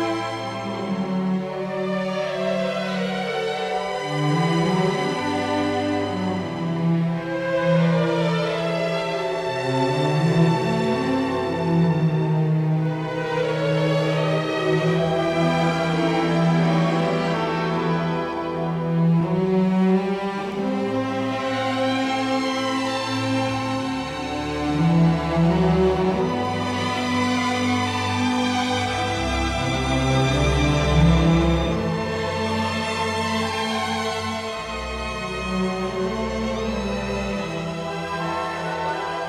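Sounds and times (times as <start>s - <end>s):
string orchestra playing: 0.0s - 39.2s.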